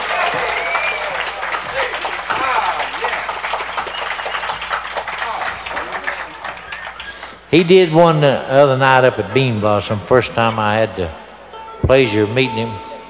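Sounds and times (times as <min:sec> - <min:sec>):
audience applause for a nine-year-old fiddler on stage: 0:00.0 - 0:07.4
speech: 0:07.5 - 0:11.2, 0:11.8 - 0:12.9.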